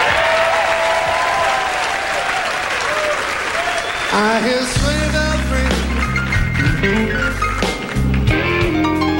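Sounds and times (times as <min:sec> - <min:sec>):
audience cheers: 0:00.0 - 0:04.8
audience applause: 0:00.0 - 0:09.1
audience whistles: 0:03.6 - 0:04.5.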